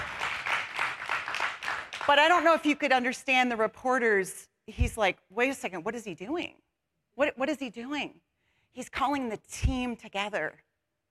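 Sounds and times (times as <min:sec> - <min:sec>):
hand clapping: 0:00.0 - 0:02.4
speech: 0:02.1 - 0:06.6, 0:07.2 - 0:10.6.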